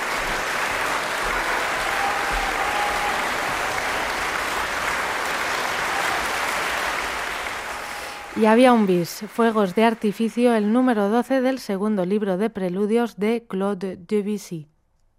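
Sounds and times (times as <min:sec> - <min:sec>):
concert audience applause after piano performance: 0:00.0 - 0:10.4
speech: 0:08.4 - 0:14.7.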